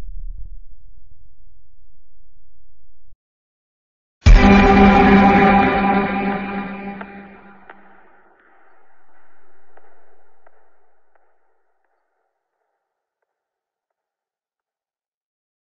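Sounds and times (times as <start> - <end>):
horror sound effects: 4.3 - 8.0.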